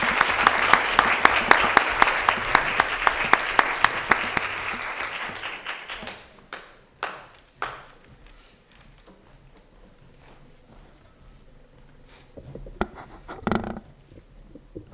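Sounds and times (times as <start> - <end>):
audience applause: 0.0 - 8.1.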